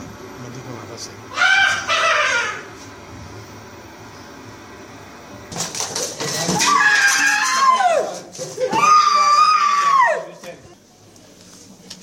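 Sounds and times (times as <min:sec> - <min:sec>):
people screaming: 0:01.3 - 0:02.7, 0:06.5 - 0:10.4
people laughing: 0:08.3 - 0:09.0.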